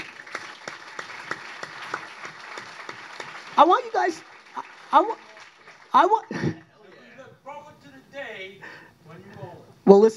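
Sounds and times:
audience applause: 0.0 - 6.9
speech: 3.6 - 5.3, 5.9 - 6.6, 8.4 - 10.1
laughter: 6.1 - 7.3.

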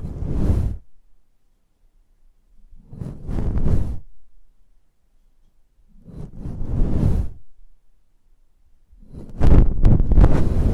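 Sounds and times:
close-up mic whooshing rustling swells: 0.0 - 0.9, 2.8 - 4.2, 5.9 - 7.6, 9.0 - 10.7.

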